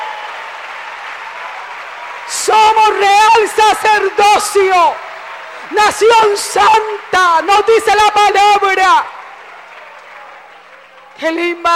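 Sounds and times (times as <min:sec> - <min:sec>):
congregation applauding in a church service: 0:00.0 - 0:11.7
speech: 0:02.3 - 0:05.1, 0:05.7 - 0:09.1, 0:11.2 - 0:11.7.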